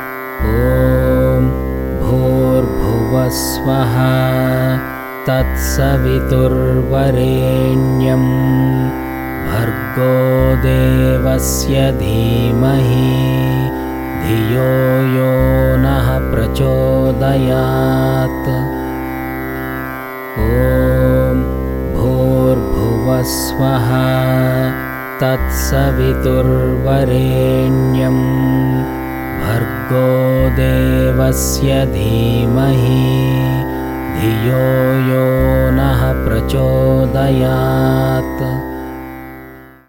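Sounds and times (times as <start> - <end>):
meditation chanting: 0.4 - 39.6.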